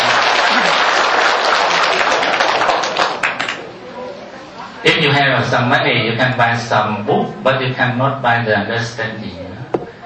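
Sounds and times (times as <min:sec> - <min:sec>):
audience applause: 0:00.0 - 0:03.6
speech: 0:05.1 - 0:09.6.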